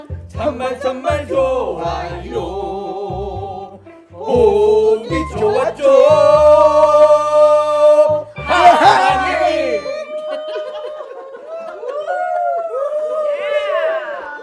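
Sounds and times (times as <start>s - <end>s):
Korean song: 0.0s - 10.3s
laughter: 8.5s - 13.0s.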